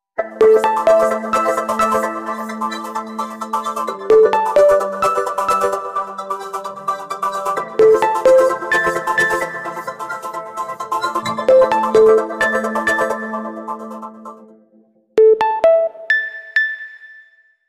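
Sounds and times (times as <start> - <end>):
ringtone: 0.2 - 2.9, 4.0 - 6.3, 7.7 - 9.9, 11.4 - 14.0, 15.2 - 17.6.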